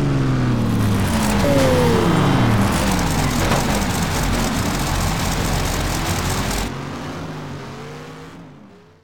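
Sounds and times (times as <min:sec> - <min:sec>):
Dino 246 GTS car engine: 0:00.1 - 0:07.0.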